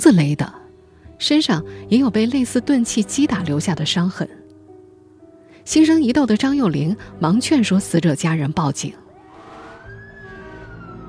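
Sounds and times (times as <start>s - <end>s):
speech: 0.0s - 0.6s, 1.2s - 4.4s, 5.6s - 9.0s
police car siren: 9.1s - 11.0s.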